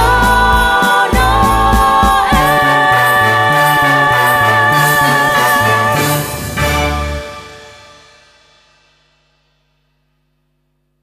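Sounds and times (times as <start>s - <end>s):
Christmas song: 0.0s - 8.6s.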